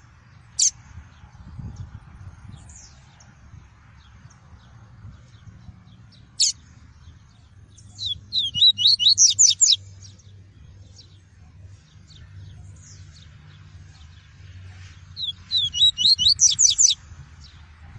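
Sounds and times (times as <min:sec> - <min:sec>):
double-collared seedeater whistled song: 0:07.8 - 0:09.8, 0:15.2 - 0:17.0.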